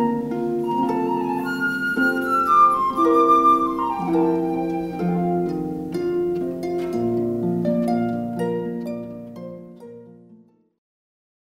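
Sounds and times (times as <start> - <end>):
flute: 0.0 - 6.4
harp: 0.0 - 10.6.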